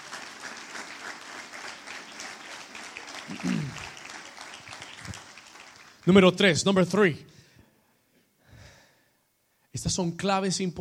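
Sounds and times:
audience applause: 0:00.0 - 0:06.3
speech: 0:03.3 - 0:03.9, 0:06.1 - 0:07.3, 0:09.8 - 0:10.8.

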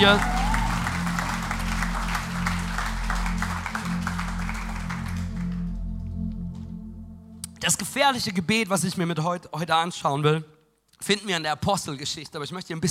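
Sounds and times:
speech: 0:00.0 - 0:00.3, 0:07.6 - 0:12.8
audience applauding: 0:00.0 - 0:05.8
sustained low musical tone: 0:00.0 - 0:08.7.

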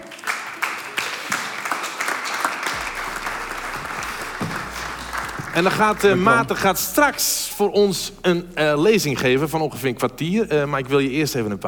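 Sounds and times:
audience applause: 0:00.0 - 0:07.5
speech: 0:05.6 - 0:11.6.

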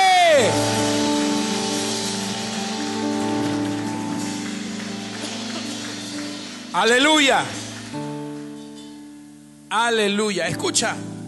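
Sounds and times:
sustained keyboard chords: 0:00.0 - 0:11.2
audience clapping: 0:01.2 - 0:08.6
speech: 0:06.8 - 0:08.0, 0:09.7 - 0:11.2.

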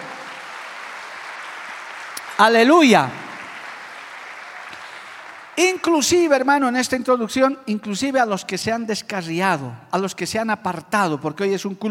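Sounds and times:
audience applause: 0:00.0 - 0:05.6
speech: 0:02.4 - 0:03.2, 0:05.6 - 0:11.9.

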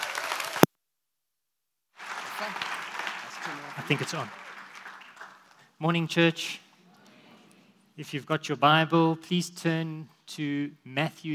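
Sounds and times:
audience applause: 0:00.0 - 0:00.7, 0:02.0 - 0:05.6
speech: 0:03.9 - 0:04.4, 0:05.8 - 0:06.6, 0:08.0 - 0:11.3.

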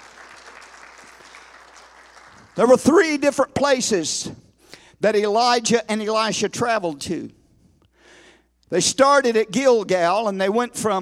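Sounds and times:
audience clapping hands in praise: 0:00.0 - 0:02.8
speech: 0:02.6 - 0:04.4, 0:05.0 - 0:07.4, 0:08.7 - 0:11.0.

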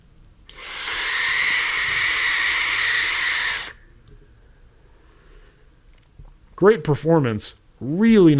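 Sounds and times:
loud airflow hiss of vape atomizer: 0:00.5 - 0:03.8
speech: 0:06.6 - 0:08.3.

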